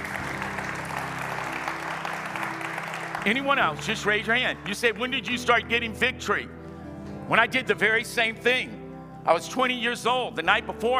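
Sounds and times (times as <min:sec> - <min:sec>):
audience clapping: 0:00.0 - 0:05.1
speech: 0:03.2 - 0:06.6, 0:07.3 - 0:10.9.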